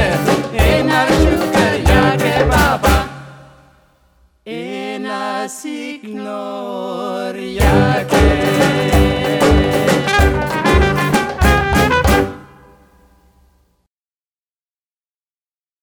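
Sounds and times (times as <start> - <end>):
gypsy quintet playing: 0.0 - 3.1, 7.6 - 12.8.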